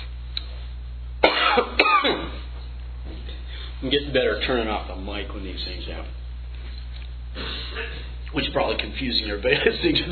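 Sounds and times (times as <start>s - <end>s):
harsh choking coughs: 1.2s - 2.4s
speech: 1.6s - 2.2s, 3.8s - 6.2s, 7.4s - 10.0s.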